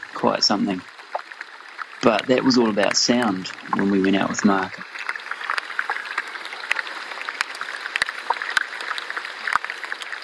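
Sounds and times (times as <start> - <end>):
melting iceberg ice crackling and fizzing: 0.0 - 10.2
speech: 0.2 - 0.9, 2.0 - 4.9.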